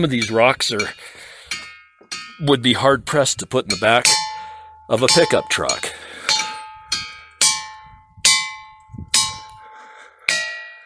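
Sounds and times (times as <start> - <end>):
speech: 0.0 - 1.2, 2.4 - 4.2, 4.9 - 5.9
ringing rock struck with a metallic tone: 0.0 - 2.8, 3.7 - 9.7, 10.3 - 10.8.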